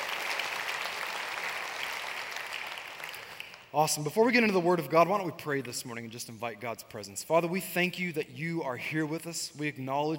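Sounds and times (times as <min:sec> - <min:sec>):
church congregation applauding to welcome guests: 0:00.0 - 0:03.8
speech: 0:03.7 - 0:10.1.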